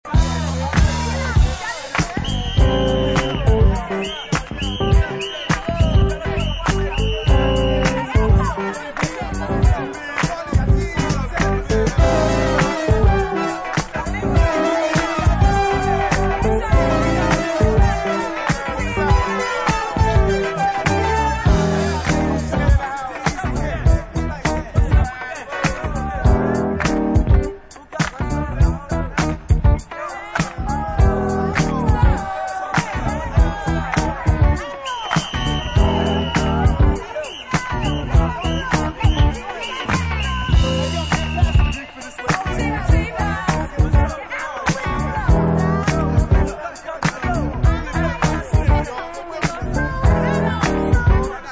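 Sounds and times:
instrumental music: 0:00.0 - 0:51.5.

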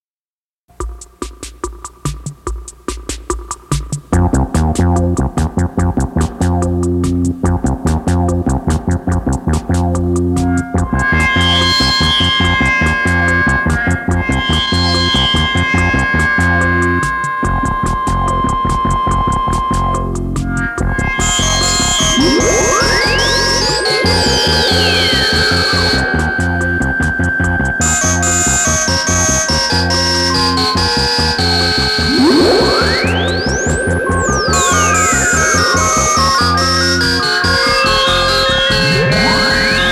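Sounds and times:
Moog synthesizer rock: 0:01.6 - 0:39.9.

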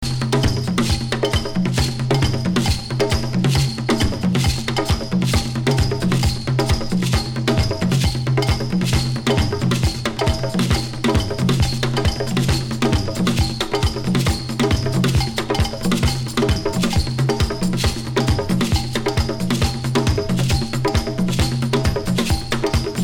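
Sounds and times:
dance drums: 0:00.0 - 0:23.0.

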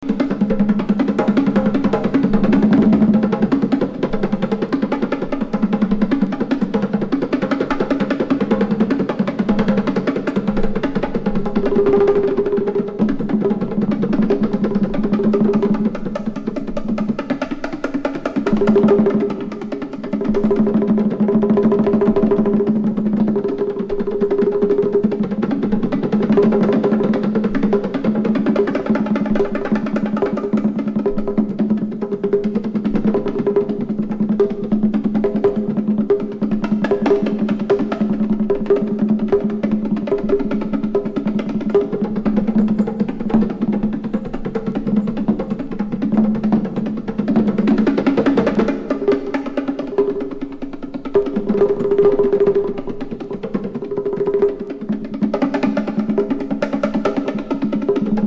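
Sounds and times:
fast percussion: 0:00.0 - 0:58.2.

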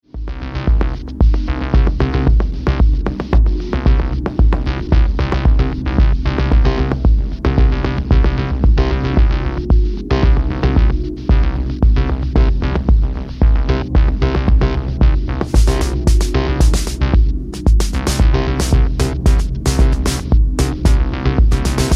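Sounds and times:
drum machine beat: 0:00.1 - 0:21.9.

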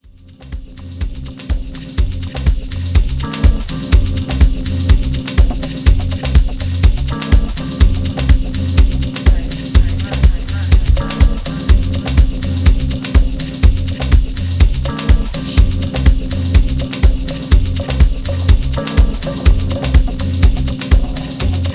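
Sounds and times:
jazz music: 0:00.2 - 0:21.7.

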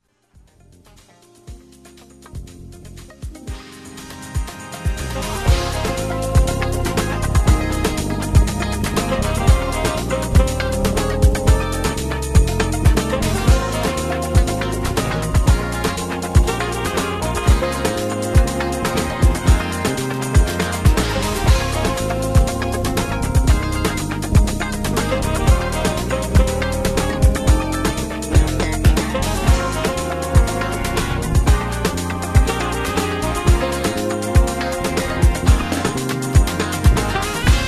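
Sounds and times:
synth arpeggios: 0:02.2 - 0:37.6.

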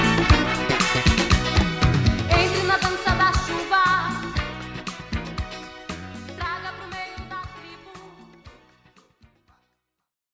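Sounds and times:
drum playing: 0:00.0 - 0:06.4.

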